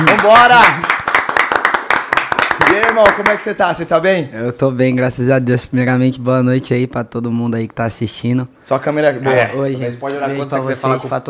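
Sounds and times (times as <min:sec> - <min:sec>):
round of applause from a small group: 0:00.0 - 0:03.5
speech: 0:00.2 - 0:00.9, 0:02.7 - 0:11.2.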